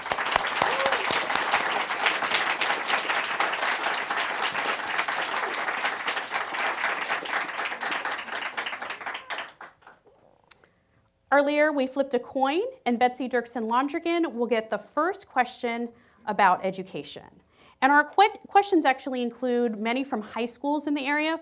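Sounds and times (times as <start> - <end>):
audience applause welcoming congressional debate candidates: 0.0 - 10.0
speech: 11.4 - 21.4.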